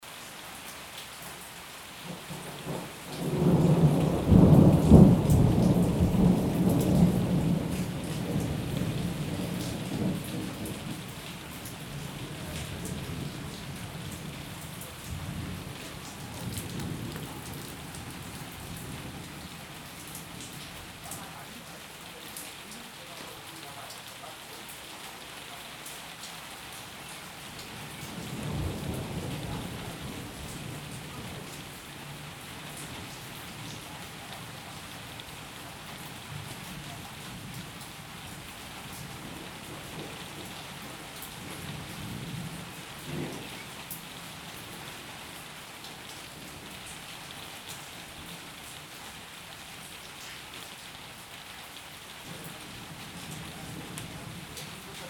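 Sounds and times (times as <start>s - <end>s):
summer rain: 0.0s - 55.0s
thunder: 2.3s - 11.0s, 15.0s - 19.3s, 28.1s - 31.5s, 43.1s - 43.6s.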